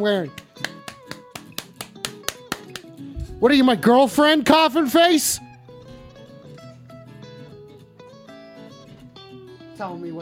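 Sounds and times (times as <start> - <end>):
speech: 0.0 - 0.7, 3.4 - 5.5, 9.8 - 10.2
audience clapping: 0.2 - 3.1.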